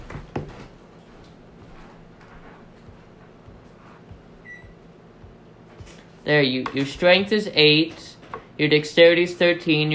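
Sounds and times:
oven humming while preheating: 0:00.0 - 0:09.9
high electronic oven beep: 0:04.4 - 0:04.8
speech: 0:06.2 - 0:08.0, 0:08.6 - 0:09.9.

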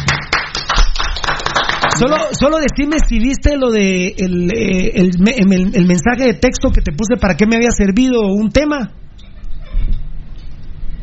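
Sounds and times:
small group of people applauding: 0:00.0 - 0:02.4
speech: 0:02.0 - 0:09.0.

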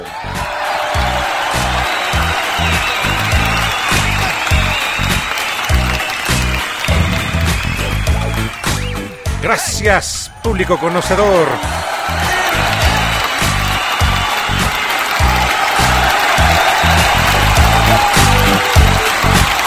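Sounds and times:
faint whoops and cheers: 0:00.0 - 0:09.3, 0:10.3 - 0:19.6
audience applause: 0:00.0 - 0:19.6
speech: 0:09.4 - 0:12.3.

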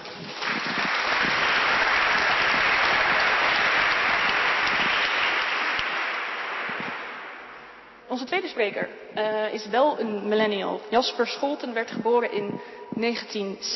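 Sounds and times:
audience applause: 0:00.0 - 0:07.9
speech: 0:08.2 - 0:13.7.

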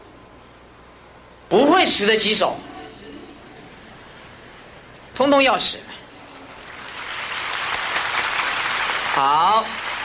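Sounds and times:
speech: 0:01.5 - 0:02.7, 0:05.2 - 0:05.9, 0:09.2 - 0:09.9
audience applause: 0:06.5 - 0:10.0.

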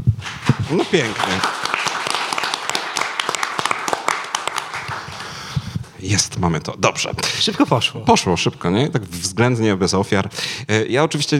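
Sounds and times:
audience applause: 0:00.4 - 0:05.6
speech: 0:00.7 - 0:01.6, 0:06.0 - 0:11.3.

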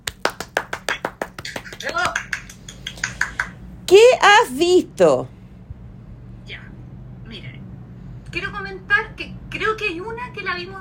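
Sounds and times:
small group clapping: 0:00.0 - 0:03.6
speech: 0:01.8 - 0:02.3, 0:03.9 - 0:05.4, 0:08.4 - 0:10.7.

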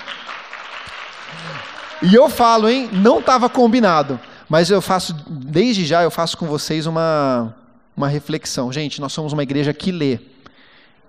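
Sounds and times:
audience applause: 0:00.0 - 0:04.4
speech: 0:01.6 - 0:10.3.

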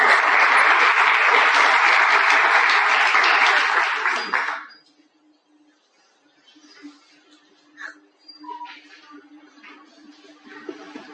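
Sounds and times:
audience applause: 0:00.0 - 0:04.7.

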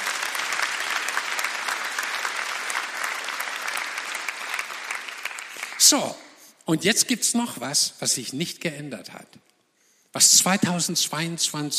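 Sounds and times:
audience applause: 0:00.0 - 0:06.0
speech: 0:05.9 - 0:09.5, 0:10.1 - 0:11.7.

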